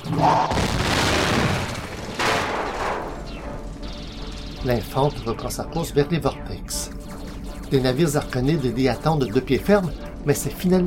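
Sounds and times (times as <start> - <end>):
spaceship reactor explosion: 0.0 - 4.8
speech: 0.1 - 0.6, 4.6 - 7.0, 7.7 - 10.8.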